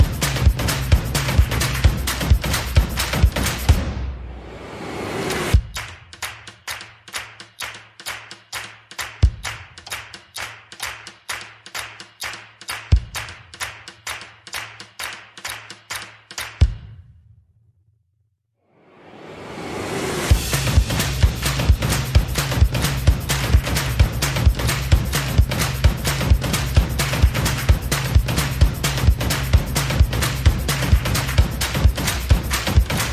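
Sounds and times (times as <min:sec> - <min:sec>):
percussion: 0:00.0 - 0:17.4, 0:19.0 - 0:33.1
sound effects: 0:03.8 - 0:05.6.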